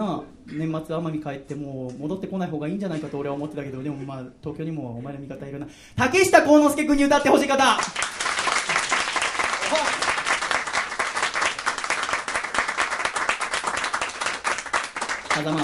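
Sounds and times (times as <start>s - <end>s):
speech: 0.0s - 8.0s, 15.4s - 15.6s
large audience applause: 7.8s - 15.6s.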